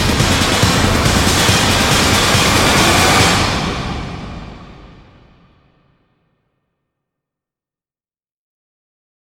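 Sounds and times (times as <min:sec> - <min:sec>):
remix drums: 0:00.0 - 0:05.4.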